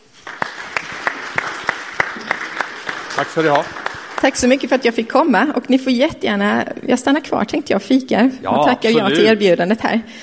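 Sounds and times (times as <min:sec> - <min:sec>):
audience clapping for a guest: 0:00.0 - 0:05.3
speech: 0:03.2 - 0:10.2.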